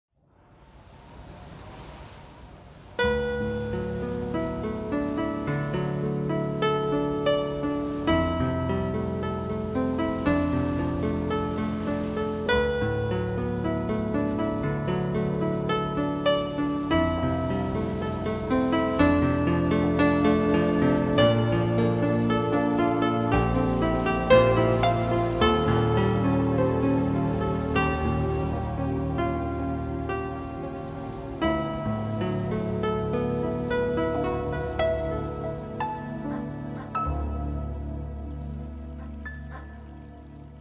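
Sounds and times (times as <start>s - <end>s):
new age piano music: 0.4s - 40.5s.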